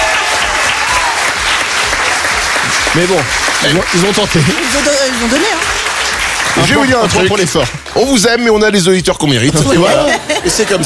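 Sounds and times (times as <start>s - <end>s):
crowd applauding: 0.0s - 8.6s
speech: 3.0s - 5.7s, 6.6s - 10.8s
laughter: 9.4s - 10.8s.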